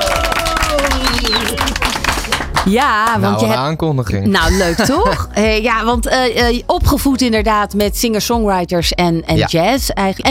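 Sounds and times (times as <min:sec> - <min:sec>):
audience applause: 0:00.0 - 0:03.4
speech: 0:02.6 - 0:10.2
laughter: 0:04.4 - 0:05.4.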